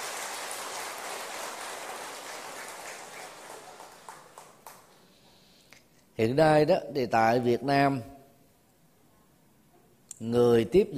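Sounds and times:
audience applause: 0.0 - 4.9
speech: 6.2 - 8.1, 10.2 - 10.9.

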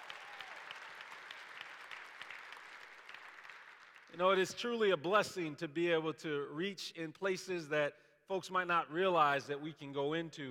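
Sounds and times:
crowd applauding: 0.0 - 4.2
speech: 4.1 - 10.5.

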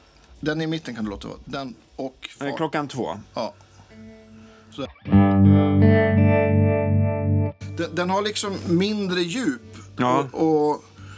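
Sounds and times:
speech: 0.4 - 4.1, 4.7 - 6.9, 7.8 - 10.9
electric guitar through an effects pedal playing distorted chords: 3.9 - 8.3.

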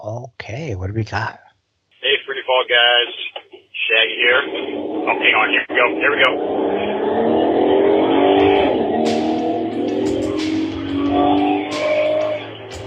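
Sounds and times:
speech: 0.0 - 1.4, 2.5 - 7.4
company van engine driving: 4.1 - 12.8.

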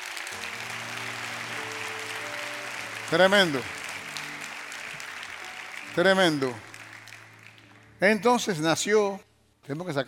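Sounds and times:
audience applause: 0.0 - 8.2
low sustained musical tone: 0.3 - 8.2
speech: 3.1 - 3.8, 6.0 - 6.7, 8.0 - 10.0.

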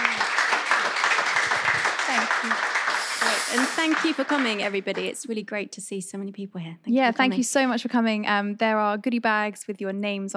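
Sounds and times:
audience applause: 0.0 - 5.2
speech: 3.8 - 10.3.

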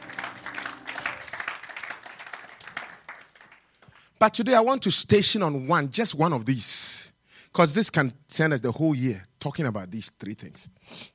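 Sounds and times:
audience clapping: 0.0 - 4.1
speech: 4.2 - 11.1.

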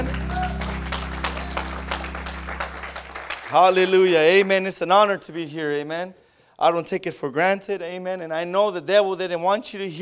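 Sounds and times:
audience clapping: 0.0 - 4.4
speech: 3.5 - 10.0.

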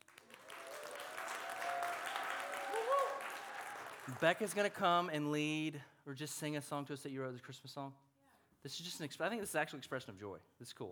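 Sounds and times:
crowd cheering and clapping: 0.0 - 4.8
voices whooping: 0.5 - 4.1
speech: 4.1 - 8.0, 8.6 - 10.9.

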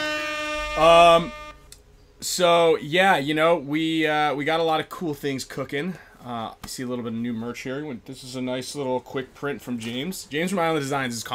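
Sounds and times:
air horn sound effect: 0.0 - 1.7
speech: 0.8 - 1.4, 2.2 - 11.3.

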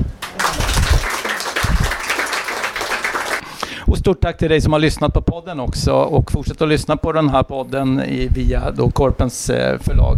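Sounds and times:
audience applause: 0.2 - 3.4
speech: 4.0 - 10.1.

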